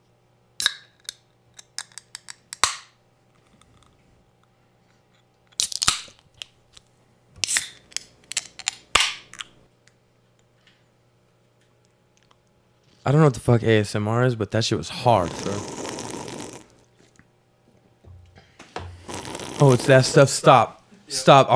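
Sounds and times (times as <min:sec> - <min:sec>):
speech: 0:13.1 - 0:15.8, 0:19.6 - 0:21.5
beer being opened next to microphone: 0:15.2 - 0:16.8, 0:18.9 - 0:20.2.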